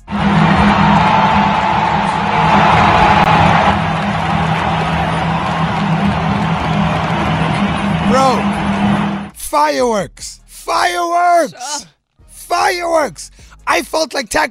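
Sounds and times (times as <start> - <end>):
huge stadium crowd roaring and cheering: 0.0 - 9.4
whoops and applause: 0.1 - 9.1
speech: 9.7 - 11.9, 12.5 - 14.4.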